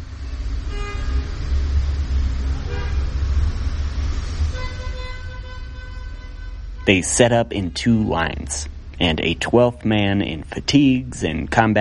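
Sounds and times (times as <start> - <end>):
morning-commute traffic around a small corner park between busy streets: 0.0 - 11.7
car horn toots: 2.6 - 3.2, 4.5 - 7.4
speech: 6.9 - 11.7.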